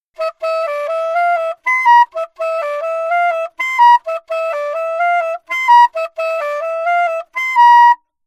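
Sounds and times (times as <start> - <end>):
alto saxophone: 0.1 - 8.0.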